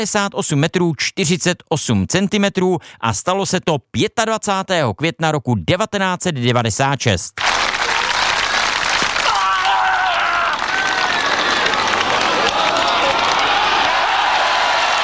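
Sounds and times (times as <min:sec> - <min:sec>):
speech: 0:00.0 - 0:07.5
large stadium crowd applauding: 0:07.4 - 0:15.0.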